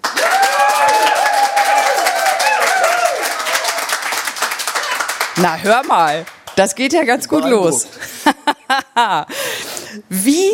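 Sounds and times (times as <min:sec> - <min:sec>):
audience applause and cheering: 0:00.0 - 0:06.4
speech: 0:05.4 - 0:08.4, 0:09.0 - 0:10.5
laughter: 0:07.6 - 0:09.4.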